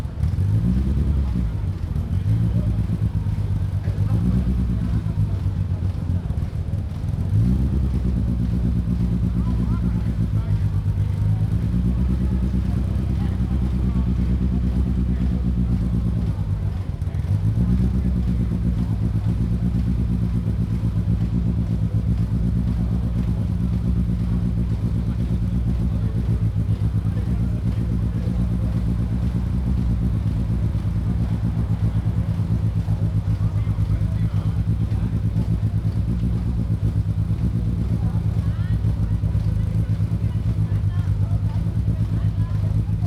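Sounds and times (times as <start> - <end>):
cars starting up and revving at la Piazza Piccola di Sassuolo: 0.0 - 43.0.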